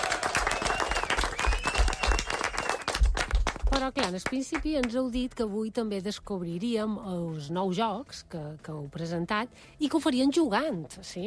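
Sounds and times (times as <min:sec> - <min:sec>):
applause: 0:00.0 - 0:04.9
speech: 0:03.8 - 0:11.2.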